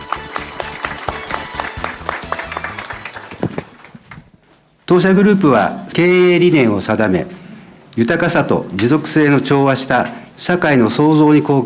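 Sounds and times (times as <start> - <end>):
audience applause: 0.0 - 4.2
speech: 4.9 - 7.4, 8.0 - 11.6.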